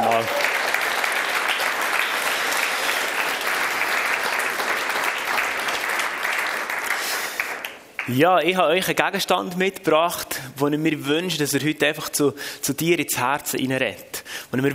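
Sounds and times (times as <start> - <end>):
audience applause: 0.0 - 8.2
speech: 8.1 - 14.7.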